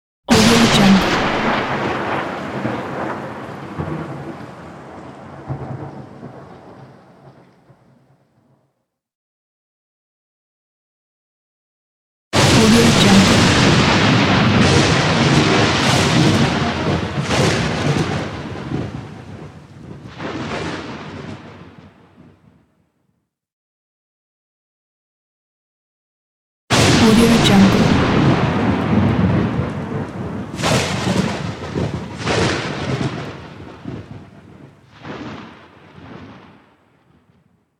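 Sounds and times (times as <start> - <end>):
lightning strikes: 0.3 - 8.2, 12.4 - 22.5, 26.7 - 37.4.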